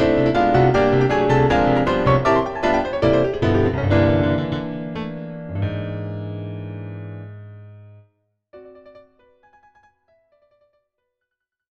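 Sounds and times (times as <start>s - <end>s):
D274 grand piano: 0.0s - 8.0s.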